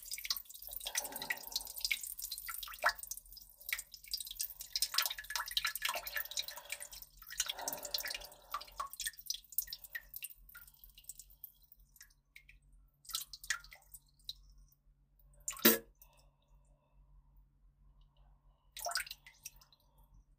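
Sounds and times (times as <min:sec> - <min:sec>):
person urinating in a hurry: 0:00.0 - 0:11.5
person farting: 0:15.6 - 0:15.8.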